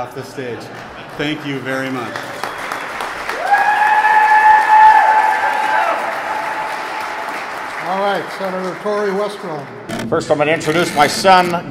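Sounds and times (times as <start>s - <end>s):
speech: 0.0s - 2.4s, 7.9s - 11.6s
audience clapping at a rally: 0.7s - 9.9s.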